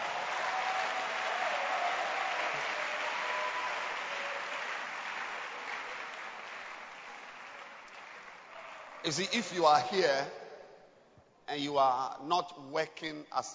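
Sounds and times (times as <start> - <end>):
conference audience applause: 0.0 - 9.3
speech: 9.0 - 10.4, 11.5 - 13.5.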